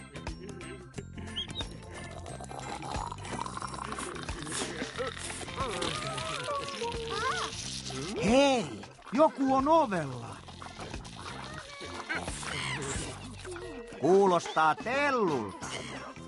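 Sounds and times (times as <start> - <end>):
bath water running: 2.0 - 14.0
speech: 9.2 - 10.4, 14.0 - 15.6.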